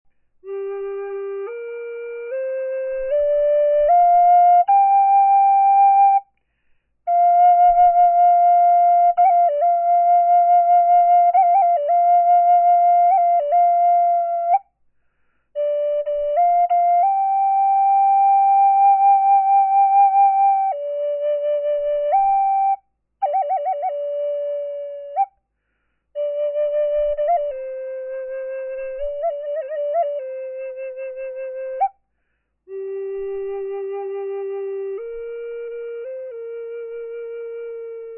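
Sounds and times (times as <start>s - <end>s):
natural flute: 0.1s - 38.1s.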